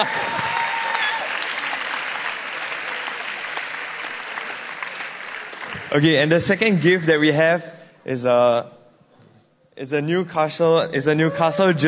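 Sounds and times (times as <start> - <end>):
speech: 0.0 - 0.3, 5.9 - 8.8, 9.8 - 11.8
audience applause: 0.0 - 7.2.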